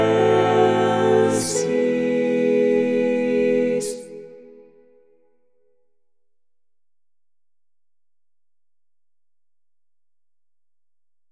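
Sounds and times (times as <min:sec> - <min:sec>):
voices: 0:00.0 - 0:04.4.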